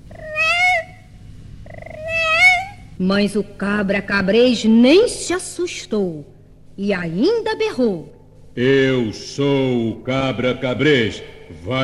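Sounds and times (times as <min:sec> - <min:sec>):
cat meowing: 0:00.0 - 0:01.0, 0:01.7 - 0:02.9
speech: 0:03.0 - 0:11.8.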